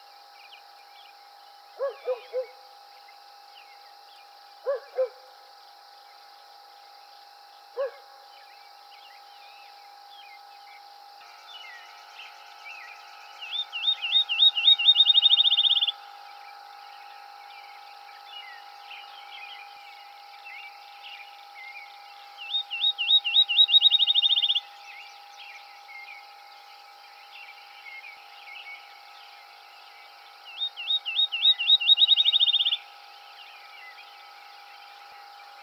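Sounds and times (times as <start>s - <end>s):
faint steady hum: 0.0s - 35.6s
field sparrow singing: 11.3s - 16.2s, 20.4s - 26.1s, 30.5s - 34.2s.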